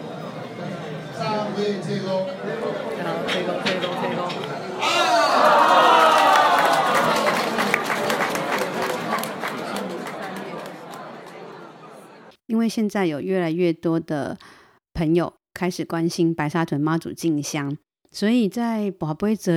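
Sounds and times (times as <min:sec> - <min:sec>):
temple crowd cheering: 0:00.0 - 0:12.4
speech: 0:01.6 - 0:05.6, 0:12.7 - 0:19.5.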